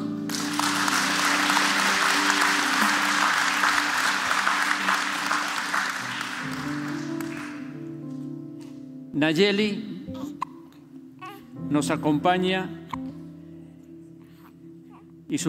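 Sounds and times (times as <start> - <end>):
crowd applauding: 0.0 - 7.8
speech: 9.2 - 9.9, 11.7 - 12.8.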